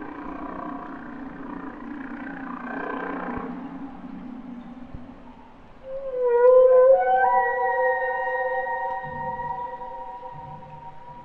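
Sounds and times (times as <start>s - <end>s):
humpback whale song with rising whooping cries: 5.8s - 11.2s.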